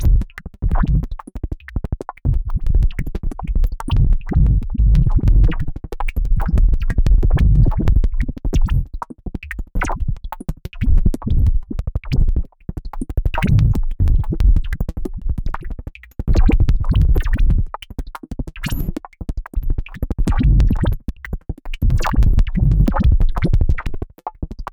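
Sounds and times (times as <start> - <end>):
kick drum: 0.0 - 1.1, 2.2 - 8.9, 9.6 - 12.5, 13.2 - 15.6, 16.3 - 17.8, 20.2 - 21.0, 21.8 - 23.9.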